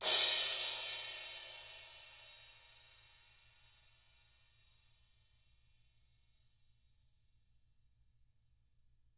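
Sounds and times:
ride cymbal swish: 0.0 - 3.2.

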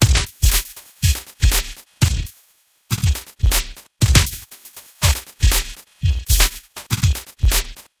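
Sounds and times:
eclectic electronica drum beat: 0.0 - 7.9.

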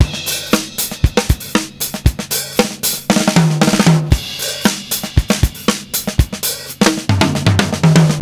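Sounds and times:
drum breaks: 0.0 - 8.1.

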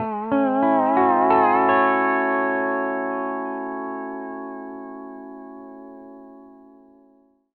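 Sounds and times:
country music loop at 140 BPM: 0.0 - 4.4.

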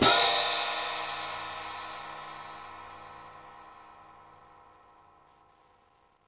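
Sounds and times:
open hi-hat: 0.0 - 4.7.

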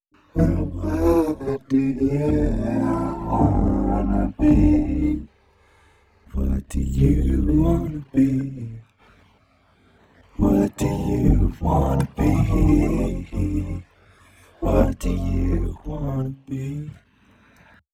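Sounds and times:
person singing in C major: 0.2 - 5.3, 6.3 - 8.8, 10.4 - 13.9, 14.6 - 17.0.

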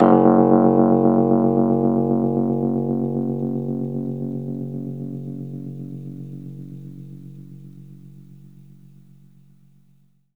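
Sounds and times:
Rhodes electric piano F sharp note: 0.0 - 8.0.

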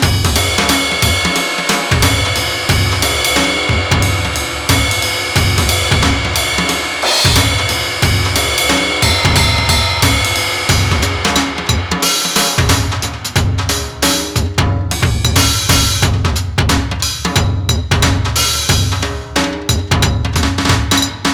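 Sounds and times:
shuffle beat: 0.0 - 21.3.

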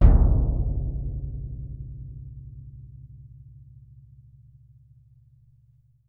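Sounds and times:
bass drum percussion: 0.0 - 4.0.

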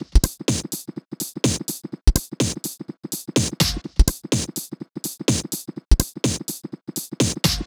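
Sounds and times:
125 BPM top loop: 0.0 - 7.6.

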